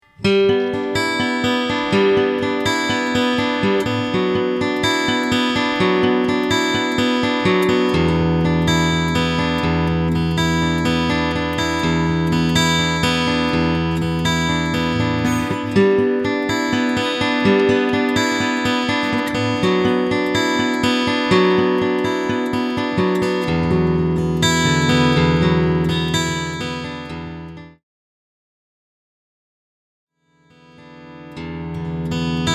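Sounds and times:
Takamine FT341 picking: 0.1 - 27.8, 30.6 - 32.5.

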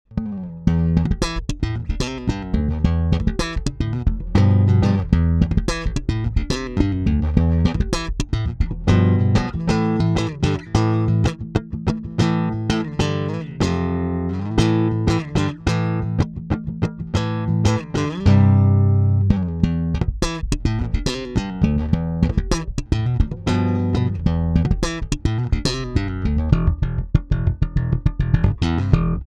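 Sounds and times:
active boost slap bass: 0.1 - 29.2.

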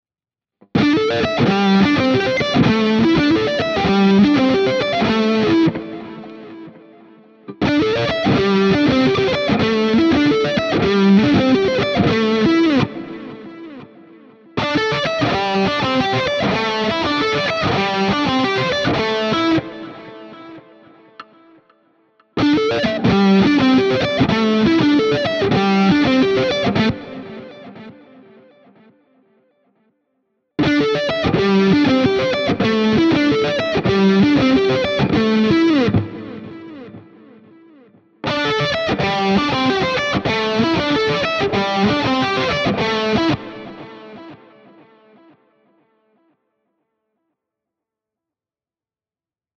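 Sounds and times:
Schecter Exotic Ziricote guitar lead riff in C: 0.7 - 28.9, 30.6 - 45.9.

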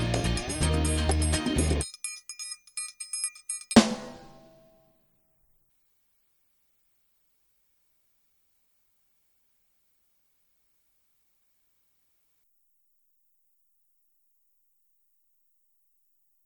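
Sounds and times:
drum loop: 0.0 - 1.9, 3.2 - 4.6.

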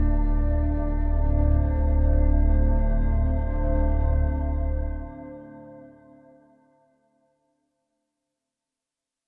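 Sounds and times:
synth pad: 0.0 - 6.4.

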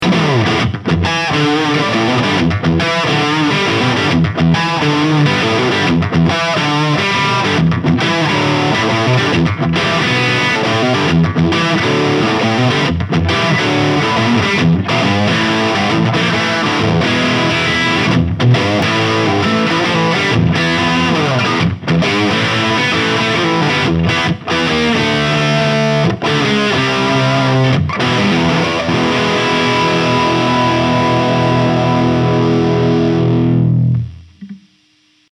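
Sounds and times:
electric guitar crunch through Harley Benton Mighty 15TH humbucker: 0.0 - 35.3.

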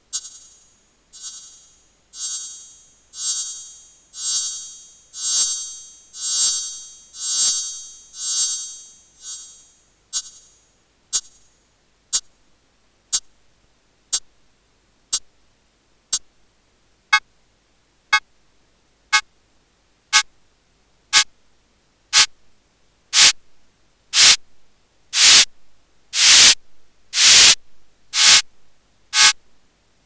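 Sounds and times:
noise hi-hat: 0.0 - 12.4, 14.1 - 14.4, 22.1 - 22.4, 23.1 - 23.4, 24.1 - 29.4.

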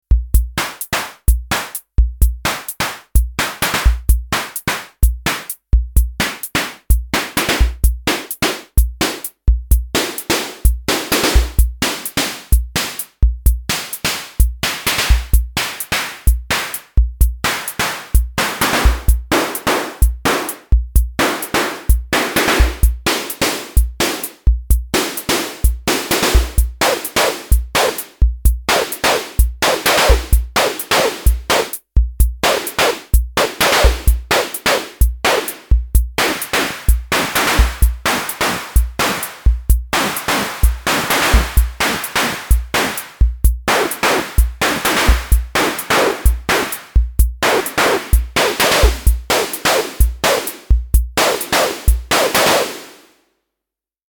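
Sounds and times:
snare drum: 0.4 - 53.1.

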